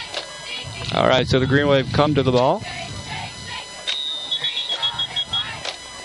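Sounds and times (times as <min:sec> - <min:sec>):
speech: 0:01.0 - 0:02.9
referee whistles: 0:03.9 - 0:05.6.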